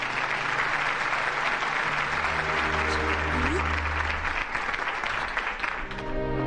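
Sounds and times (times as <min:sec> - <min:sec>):
audience applause: 0:00.0 - 0:06.3.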